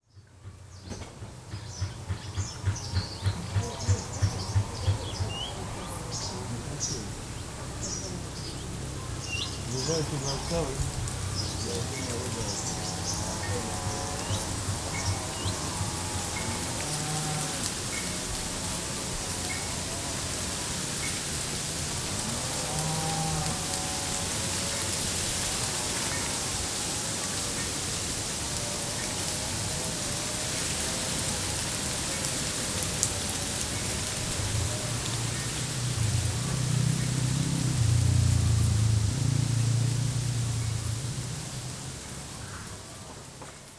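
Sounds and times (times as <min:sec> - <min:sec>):
main street ambience in the morning: 0:00.1 - 0:43.7.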